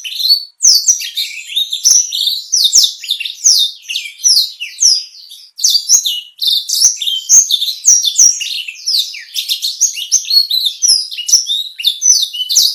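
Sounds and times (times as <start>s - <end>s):
black-throated canary singing a rapid continuous warble: 0.0s - 12.7s.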